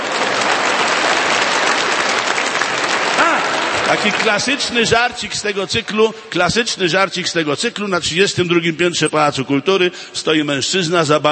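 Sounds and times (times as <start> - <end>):
audience applause: 0.0 - 5.6
speech: 3.9 - 11.3.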